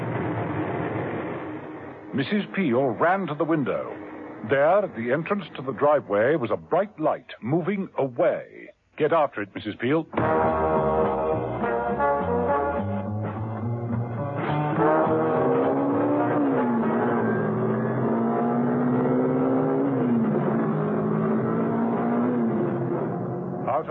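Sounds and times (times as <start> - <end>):
car accelerating: 0.0 - 6.4, 10.2 - 23.8
speech: 2.2 - 10.5.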